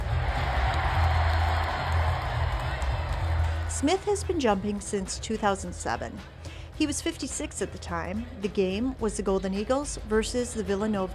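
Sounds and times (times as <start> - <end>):
crowd cheering wildly: 0.0 - 4.3
speech: 3.8 - 11.1.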